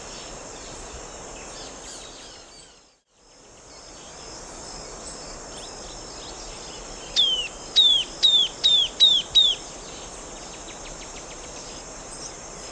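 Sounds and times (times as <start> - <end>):
bird clear high whistled calls: 7.1 - 9.6.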